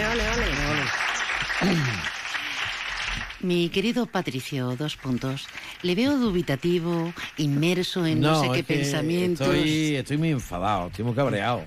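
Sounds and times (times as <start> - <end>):
applause: 0.0 - 8.0
speech: 3.4 - 11.6.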